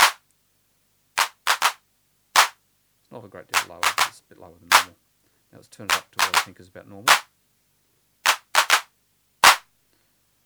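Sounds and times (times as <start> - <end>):
synthesized hand claps with low noise level: 0.0 - 0.2, 1.2 - 1.8, 2.4 - 2.6, 3.5 - 4.9, 5.9 - 6.5, 7.1 - 7.3, 8.3 - 9.6
speech: 3.2 - 7.3.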